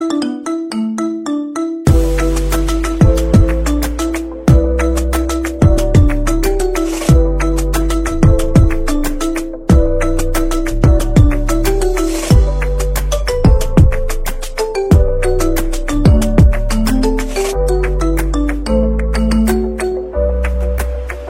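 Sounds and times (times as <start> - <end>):
marimba: 0.0 - 21.0.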